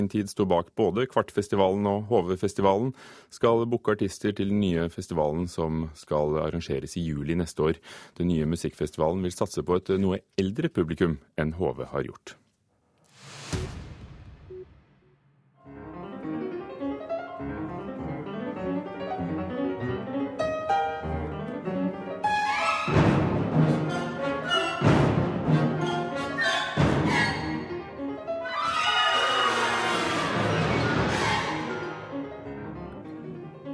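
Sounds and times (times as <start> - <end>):
speech: 0.0 - 12.4
piano concerto with symphony orchestra: 15.6 - 33.7.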